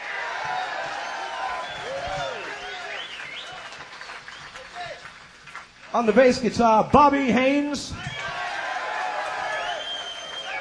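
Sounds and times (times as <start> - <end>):
whoops and cheers: 0.0 - 3.8, 8.0 - 10.6
audience applause: 0.0 - 6.5, 8.0 - 10.6
speech: 5.9 - 8.0.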